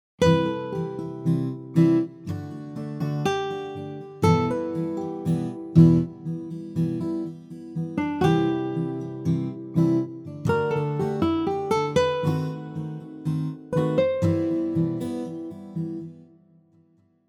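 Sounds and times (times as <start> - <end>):
various guitars playing: 0.2 - 16.3.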